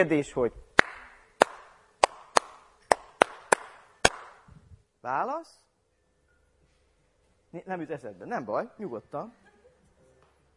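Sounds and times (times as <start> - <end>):
speech: 0.0 - 0.6, 5.0 - 5.6, 7.5 - 9.4
crisp hand claps in a two-bar rhythm: 0.8 - 4.5.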